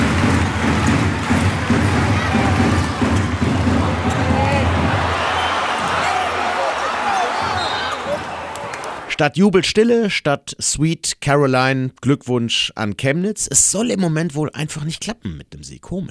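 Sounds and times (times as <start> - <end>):
arena crowd after missed final basketball shot: 0.0 - 9.2
speech: 9.2 - 16.0.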